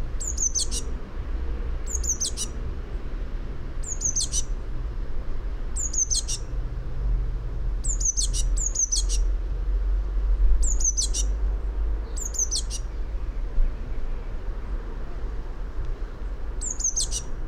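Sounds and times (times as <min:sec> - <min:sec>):
low background rumble: 0:00.0 - 0:17.4
Eurasian blue tit calling: 0:00.2 - 0:00.9, 0:01.9 - 0:02.6, 0:03.8 - 0:04.5, 0:05.8 - 0:06.5, 0:07.8 - 0:09.3, 0:10.6 - 0:11.4, 0:12.0 - 0:12.9, 0:16.6 - 0:17.3.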